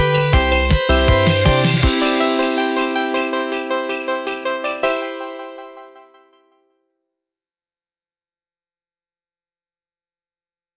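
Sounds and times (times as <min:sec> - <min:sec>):
festive Christmas music: 0:00.0 - 0:06.6.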